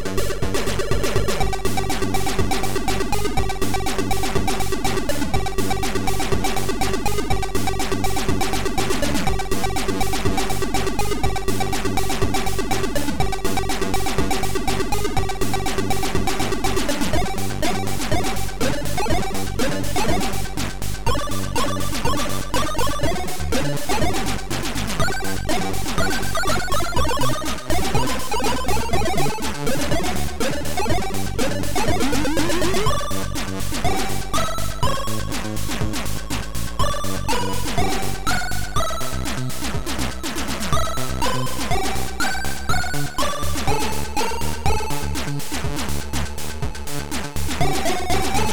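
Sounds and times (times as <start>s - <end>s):
remix music: 0.2s - 48.5s.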